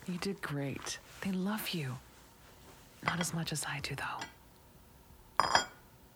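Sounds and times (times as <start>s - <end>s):
speech: 0.1s - 2.1s, 3.0s - 4.4s
dishes clinking while being dried: 2.6s - 3.5s, 5.3s - 6.0s.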